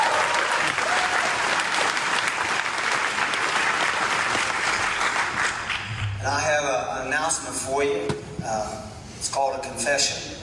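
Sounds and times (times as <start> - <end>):
audience clapping: 0.0 - 6.0
speech: 7.3 - 10.4.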